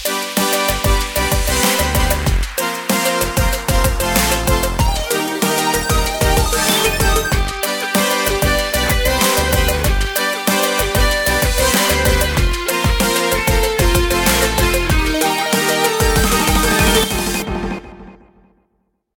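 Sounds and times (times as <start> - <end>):
victory tune: 0.1 - 18.1.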